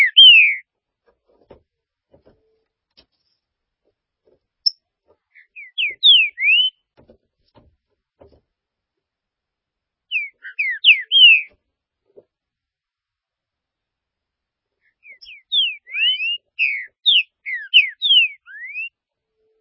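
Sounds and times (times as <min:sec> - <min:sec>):
green-winged saltator whistled phrases: 0:00.0 - 0:00.6, 0:05.4 - 0:06.7, 0:10.1 - 0:11.5, 0:15.0 - 0:18.9.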